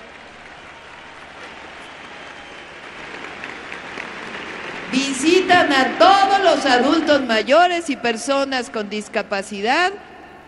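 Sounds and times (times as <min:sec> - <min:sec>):
audience applause: 0:00.0 - 0:06.7
speech: 0:04.9 - 0:10.1.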